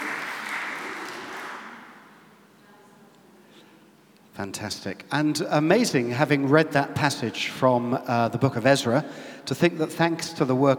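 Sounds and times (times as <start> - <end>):
audience applause: 0.0 - 2.1
speech: 4.4 - 10.7.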